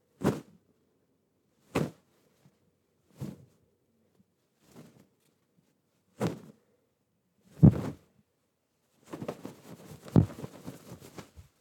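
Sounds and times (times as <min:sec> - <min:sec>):
cloth shuffling and waving: 0:07.6 - 0:08.0, 0:09.0 - 0:11.6.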